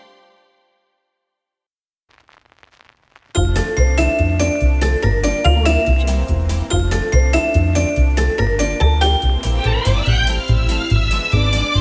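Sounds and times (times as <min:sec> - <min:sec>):
vintage sitcom logo jingle: 0:03.4 - 0:11.7.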